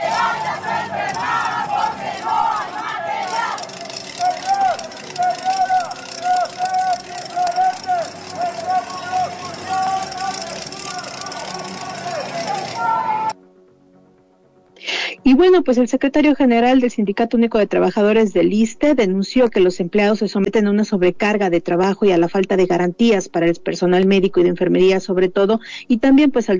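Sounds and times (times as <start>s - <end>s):
IMSS workers chanting and shouting in the streets of Xalapa: 0.0s - 13.4s
engine noise: 0.0s - 13.4s
speech: 15.5s - 26.5s.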